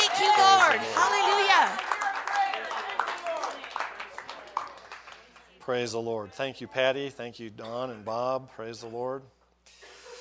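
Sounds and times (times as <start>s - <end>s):
audience clapping: 0.0s - 5.8s
speech: 5.7s - 9.4s.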